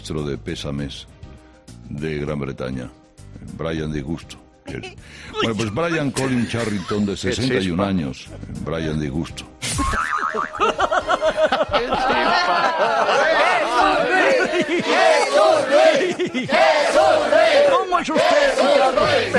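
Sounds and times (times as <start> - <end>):
speech: 0.0 - 1.2, 1.9 - 19.3
laughter: 4.7 - 7.7, 9.8 - 19.3
audience cheering: 11.8 - 19.3.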